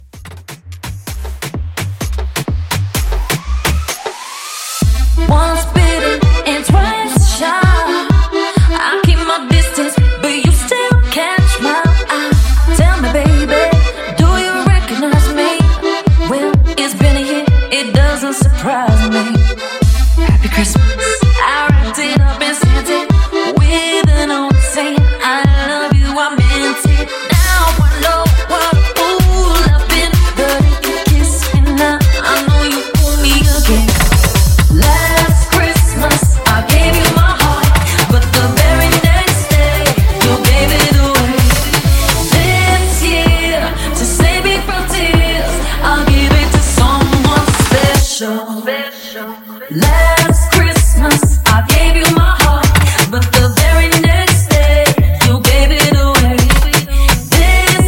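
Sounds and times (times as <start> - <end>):
Christmas Afrobeat mashup at 128 BPM: 0.0 - 48.2, 49.4 - 57.8.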